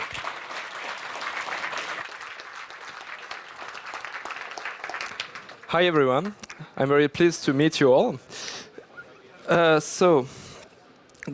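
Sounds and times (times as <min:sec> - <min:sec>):
audience applause: 0:00.0 - 0:06.6
speech: 0:05.7 - 0:08.4, 0:09.5 - 0:10.4.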